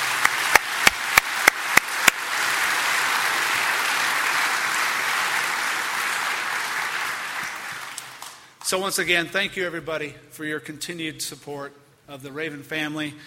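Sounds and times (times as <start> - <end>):
audience applause: 0.0 - 8.6
speech: 8.7 - 13.2.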